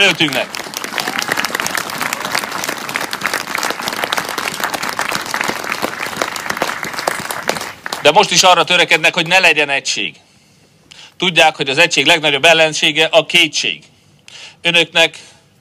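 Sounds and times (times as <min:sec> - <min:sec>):
speech: 0:00.0 - 0:00.6, 0:08.1 - 0:10.2, 0:11.2 - 0:13.9, 0:14.6 - 0:15.4
crowd applauding: 0:00.0 - 0:09.4.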